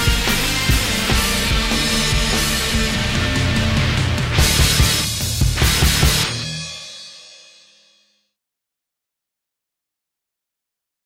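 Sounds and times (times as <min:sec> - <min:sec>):
hard rock music: 0:00.0 - 0:07.9.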